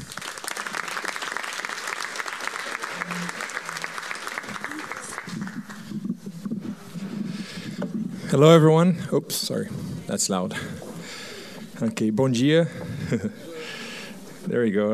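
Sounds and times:
audience applause welcoming a speaker at a church regional gathering in Arizona: 0:00.0 - 0:06.2
speech: 0:08.4 - 0:10.9, 0:11.8 - 0:13.6, 0:14.5 - 0:14.9.

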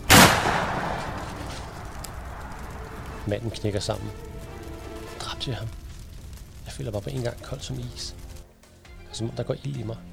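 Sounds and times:
rifle shot: 0:00.0 - 0:04.3
speech: 0:03.3 - 0:04.3, 0:05.4 - 0:05.8, 0:06.7 - 0:08.2, 0:09.1 - 0:10.1.

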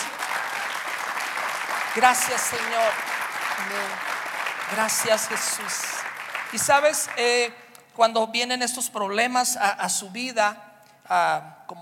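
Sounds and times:
audience applause: 0:00.0 - 0:07.4
speech: 0:02.0 - 0:04.1, 0:04.7 - 0:11.8.

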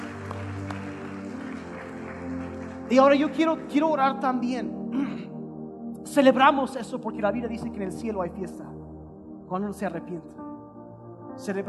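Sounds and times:
audience applause: 0:00.0 - 0:03.9
speech: 0:02.9 - 0:05.3, 0:06.1 - 0:08.8, 0:09.5 - 0:10.5, 0:11.4 - 0:11.6.

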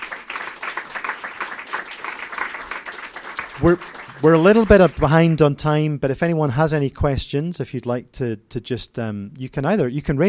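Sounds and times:
audience applause: 0:00.0 - 0:05.4
speech: 0:03.6 - 0:10.2.

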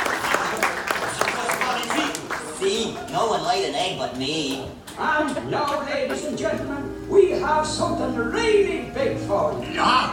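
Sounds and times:
applause in theme park attraction: 0:00.0 - 0:03.6
speech: 0:02.6 - 0:10.1.

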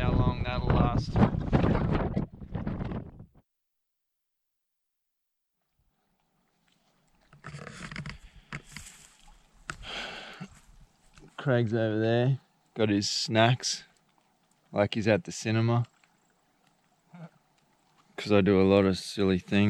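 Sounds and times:
wind blowing: 0:00.0 - 0:03.3
speech: 0:11.4 - 0:13.9, 0:14.7 - 0:15.9, 0:18.2 - 0:19.6.

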